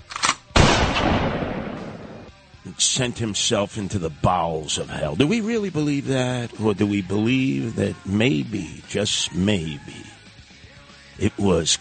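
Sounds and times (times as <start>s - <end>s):
fully loaded sawed-off Winchester shotgun firing: 0.2s - 2.3s
speech: 2.8s - 10.2s, 11.2s - 11.7s.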